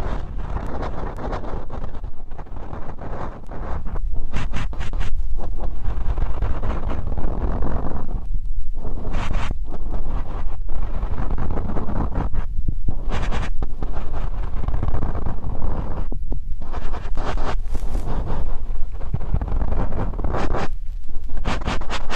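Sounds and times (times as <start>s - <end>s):
ear cleaning rustling and scraping: 0.0s - 22.1s.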